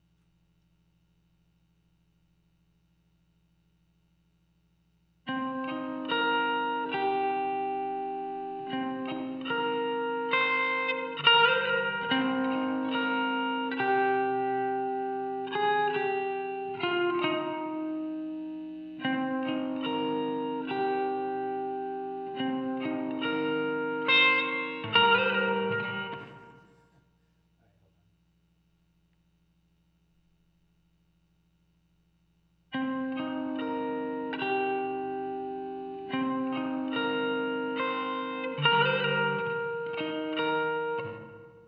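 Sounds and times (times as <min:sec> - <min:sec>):
guitar texture: 0:05.3 - 0:27.0, 0:32.8 - 0:41.6.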